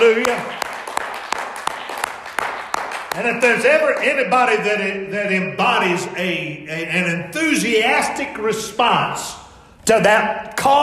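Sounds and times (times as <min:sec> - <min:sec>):
speech: 0:00.0 - 0:00.6, 0:03.2 - 0:10.8
audience clapping hands: 0:00.0 - 0:04.3.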